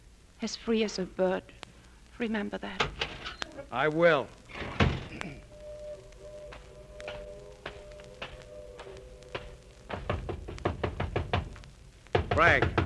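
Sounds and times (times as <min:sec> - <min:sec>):
speech: 0:00.4 - 0:01.6, 0:02.2 - 0:05.5, 0:12.4 - 0:12.8
knocking on a door: 0:09.9 - 0:12.8.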